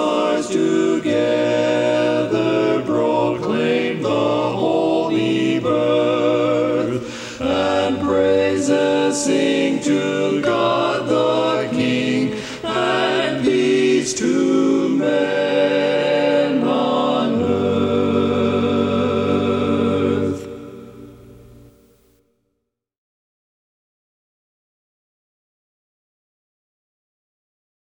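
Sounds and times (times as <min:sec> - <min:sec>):
tenor singing a cappella: 0:00.0 - 0:21.2.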